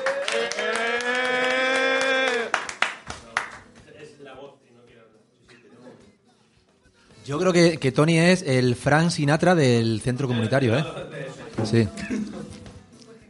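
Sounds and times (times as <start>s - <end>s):
audience applause: 0.0s - 3.6s
speech: 7.3s - 12.3s.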